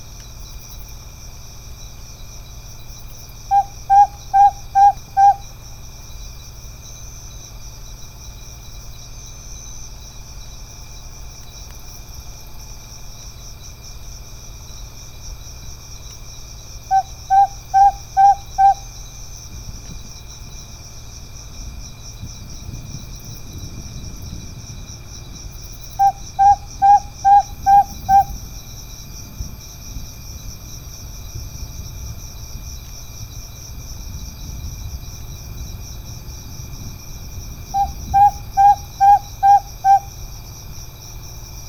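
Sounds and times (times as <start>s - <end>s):
Otus rutilus Madagascar scops owl calling: 3.5s - 5.6s, 16.9s - 19.0s, 26.0s - 28.4s, 37.7s - 40.2s.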